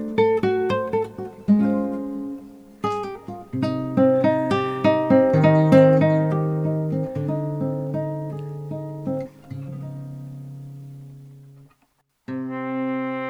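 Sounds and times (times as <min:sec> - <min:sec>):
guitar: 0:00.0 - 0:13.2
trumpet: 0:12.3 - 0:13.2.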